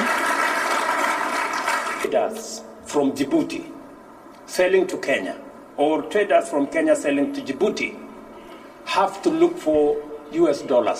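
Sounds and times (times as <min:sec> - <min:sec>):
audience applauding: 0:00.0 - 0:02.1
speech: 0:02.1 - 0:03.8, 0:04.5 - 0:08.0, 0:08.9 - 0:10.9.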